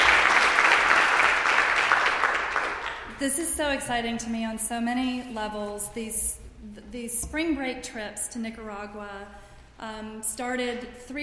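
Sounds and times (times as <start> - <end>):
crowd applauding: 0.0 - 3.2
speech: 3.2 - 11.2.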